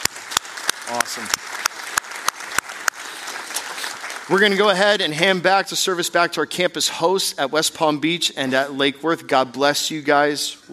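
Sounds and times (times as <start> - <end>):
crisp individual claps: 0.0 - 4.4
audience applause: 0.0 - 5.4
speech: 0.9 - 1.6, 4.3 - 10.7.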